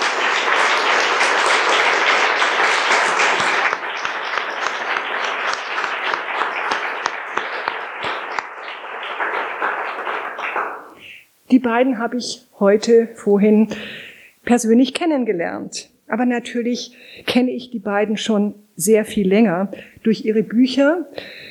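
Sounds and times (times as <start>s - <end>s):
audience applause: 0.0s - 11.0s
speech: 11.5s - 21.4s.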